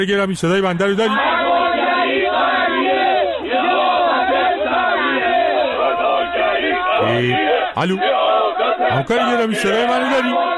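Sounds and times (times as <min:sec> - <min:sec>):
speech: 0:00.0 - 0:01.4, 0:07.0 - 0:08.2, 0:08.8 - 0:10.5
large crowd chanting and shouting: 0:00.8 - 0:10.5.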